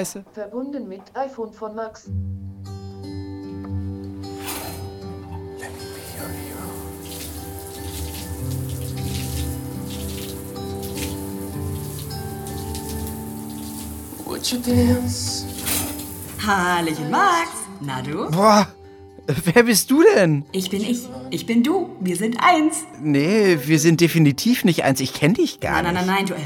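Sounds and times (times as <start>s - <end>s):
speech: 0.0s - 2.5s, 14.4s - 15.5s, 16.5s - 26.4s
shower running: 5.6s - 17.2s.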